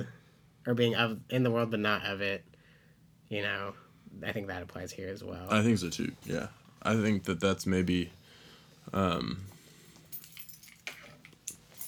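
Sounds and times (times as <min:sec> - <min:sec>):
speech: 0:00.7 - 0:02.5, 0:03.3 - 0:08.2, 0:08.8 - 0:09.5
keys jangling as they are taken off: 0:10.0 - 0:11.8.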